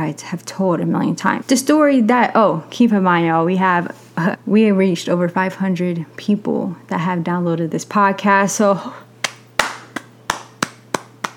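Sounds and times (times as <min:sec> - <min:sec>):
speech: 0:00.0 - 0:09.0
sharp hand claps: 0:09.2 - 0:11.3.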